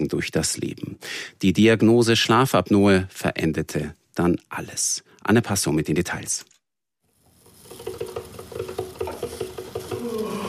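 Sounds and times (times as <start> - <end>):
speech: 0.0 - 6.5
coffee machine pump chugging: 7.7 - 10.4
coffee machine gurgle and hiss: 8.9 - 10.4.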